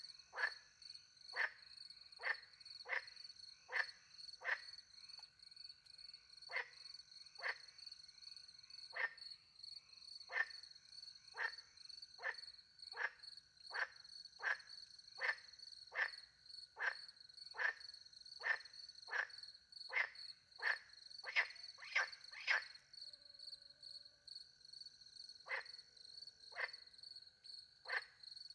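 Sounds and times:
frog croaking: 0.0s - 5.3s, 6.5s - 7.8s, 8.9s - 9.3s, 10.3s - 10.7s, 11.3s - 22.8s, 25.4s - 26.9s, 27.8s - 28.2s.

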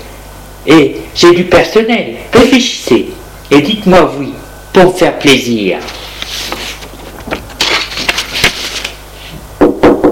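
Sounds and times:
speech: 0.6s - 6.0s
knocking on a door: 9.6s - 10.1s.

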